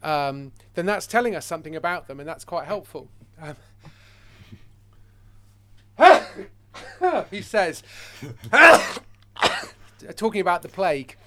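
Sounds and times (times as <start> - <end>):
speech: 0.0 - 4.0, 6.0 - 9.1, 10.0 - 11.2
sneeze: 6.0 - 6.5, 8.5 - 9.8.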